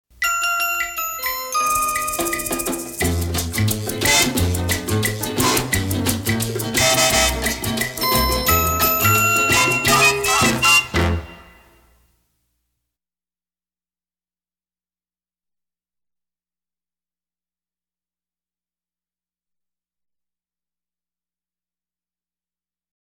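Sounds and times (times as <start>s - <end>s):
cha cha music: 0.3s - 11.8s.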